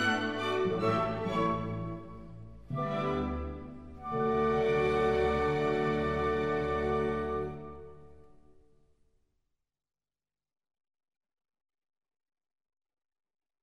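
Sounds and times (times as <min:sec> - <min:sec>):
classical piece in D major, andantino grazioso: 0:00.0 - 0:08.8.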